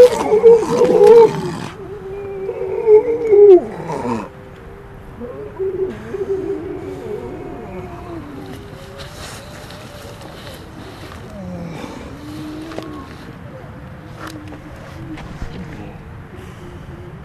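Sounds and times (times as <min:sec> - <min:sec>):
Grey seal howling: 0:00.0 - 0:17.2.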